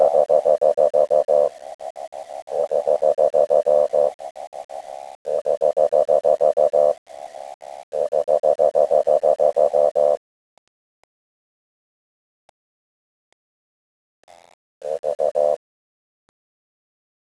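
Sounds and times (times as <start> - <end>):
Odontophrynus barrioi advertisement call pulsed croaks: 0.0 - 10.2, 14.8 - 15.6.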